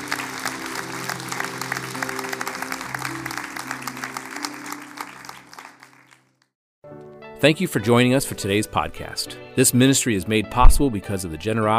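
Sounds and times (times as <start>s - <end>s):
audience applause: 0.0s - 6.4s
speech: 7.4s - 11.7s.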